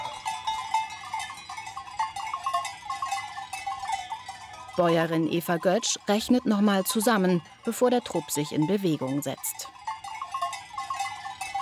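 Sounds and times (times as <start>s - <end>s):
bells of a flock of sheep clanking and jingling: 0.0s - 11.6s
speech: 4.8s - 9.8s.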